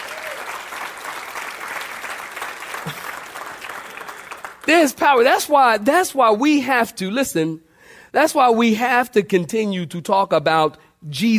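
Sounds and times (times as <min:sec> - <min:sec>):
audience clapping hands: 0:00.0 - 0:05.2
speech: 0:04.7 - 0:11.3.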